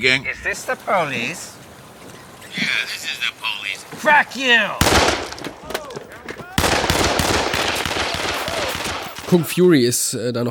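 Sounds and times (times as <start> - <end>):
speech: 0.0 - 1.6, 2.6 - 5.6, 9.3 - 10.5
sharp cracks: 4.7 - 9.5
machine-gun fire shooting a telephone: 4.8 - 5.6, 6.6 - 9.4.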